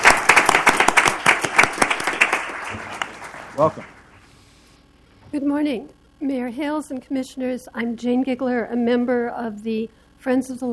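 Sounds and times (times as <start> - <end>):
audience applause after a Multnomah County Library Sesquicentennial Day proclamation in Portland: 0.0 - 4.3
speech: 3.6 - 4.0, 5.3 - 10.7.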